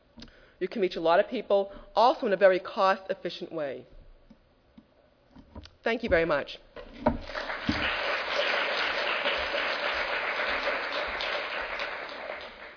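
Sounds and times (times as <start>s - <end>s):
speech: 0.6s - 4.0s, 5.8s - 7.4s
audience applause: 7.2s - 12.7s.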